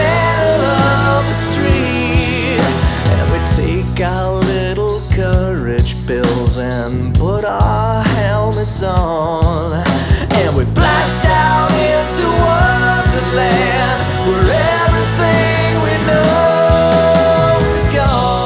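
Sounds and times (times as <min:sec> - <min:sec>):
rock pop music: 0:00.0 - 0:18.4.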